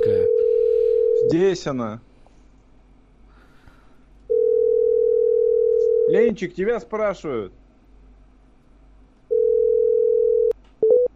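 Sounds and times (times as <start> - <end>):
telephone dial tone on a call that fails to get through: 0.3 - 1.3, 4.3 - 6.1, 9.3 - 11.0
speech: 1.3 - 2.1, 6.1 - 7.6.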